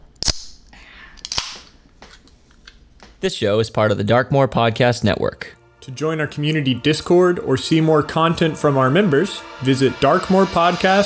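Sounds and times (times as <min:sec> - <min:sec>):
can being opened: 0:00.2 - 0:02.8
speech: 0:03.2 - 0:11.0.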